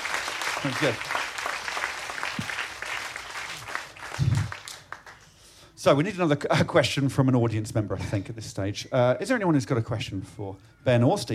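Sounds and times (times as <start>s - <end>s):
audience applause: 0.0s - 5.3s
speech: 0.6s - 1.3s, 5.8s - 11.3s.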